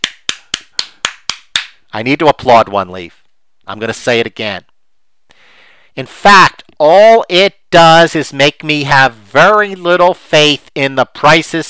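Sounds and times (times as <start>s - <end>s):
hand clapping applause: 0.0s - 1.8s
speech: 2.0s - 4.7s, 6.0s - 11.6s.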